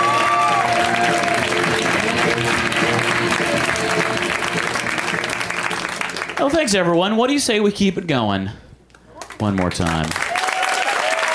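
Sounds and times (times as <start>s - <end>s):
audience applause at a comedy show welcoming a comedian: 0.0s - 7.0s, 9.2s - 11.3s
crowd noise at a comedy show: 0.0s - 7.6s
speech: 6.5s - 8.6s, 9.4s - 10.1s.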